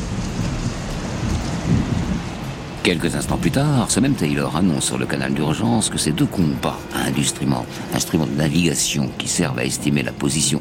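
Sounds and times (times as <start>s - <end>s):
deep thunder rumble: 0.0s - 4.9s
heavy steady rain in a storm: 0.0s - 10.6s
storm wind: 0.0s - 10.6s
speech: 2.8s - 10.6s.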